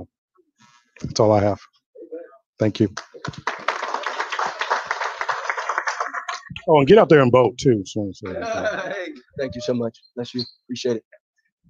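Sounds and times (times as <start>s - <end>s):
speech: 1.0s - 1.8s, 2.6s - 3.6s, 6.6s - 11.2s
audience applause: 3.0s - 6.5s
laughter: 8.3s - 9.3s.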